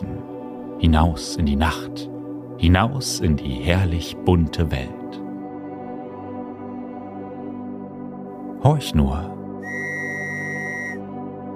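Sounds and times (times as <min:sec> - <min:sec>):
speech: 0:00.8 - 0:05.2, 0:08.6 - 0:09.9
shrill pea whistle blast: 0:09.6 - 0:11.1.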